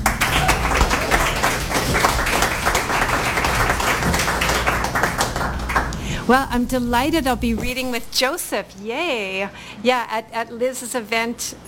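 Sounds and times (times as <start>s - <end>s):
audience applause at a reading event: 0.0s - 6.3s
speech: 6.3s - 11.6s.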